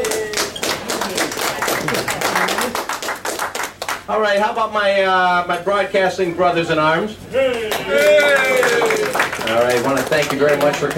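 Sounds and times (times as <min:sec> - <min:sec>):
round of applause: 0:00.0 - 0:04.1, 0:07.5 - 0:10.9
speech: 0:04.1 - 0:10.9.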